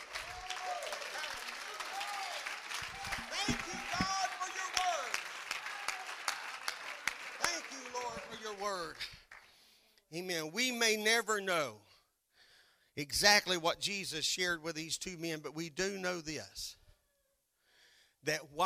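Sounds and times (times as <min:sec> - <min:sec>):
voices and cheers: 0:00.0 - 0:08.9
audience clapping hands: 0:00.0 - 0:09.6
speech: 0:10.2 - 0:11.8, 0:13.0 - 0:16.8, 0:18.2 - 0:18.6.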